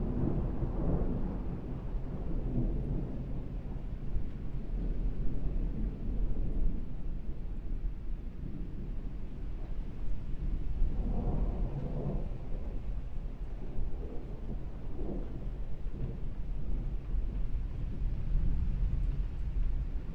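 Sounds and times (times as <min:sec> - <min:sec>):
rain: 0:00.0 - 0:20.1
rolling thunder: 0:00.0 - 0:20.1.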